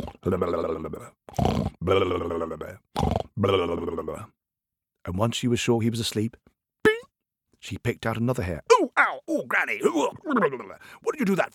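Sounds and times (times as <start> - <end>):
narrator imitating snoring: 0.0 - 4.3
speech: 0.0 - 4.4, 5.0 - 6.5, 7.6 - 11.5.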